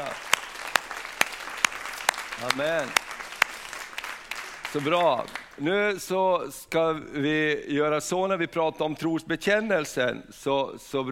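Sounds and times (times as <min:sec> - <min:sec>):
audience applause: 0:00.0 - 0:05.6
speech: 0:02.4 - 0:03.0, 0:04.7 - 0:11.0.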